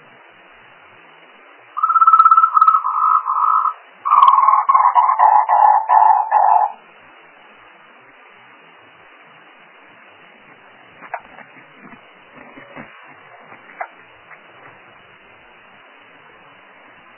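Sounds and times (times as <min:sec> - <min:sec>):
frog: 0:01.8 - 0:06.8, 0:11.0 - 0:13.0, 0:13.6 - 0:14.4.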